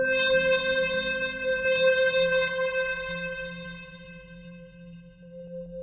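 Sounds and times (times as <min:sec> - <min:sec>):
alien bell effect: 0:00.1 - 0:04.6.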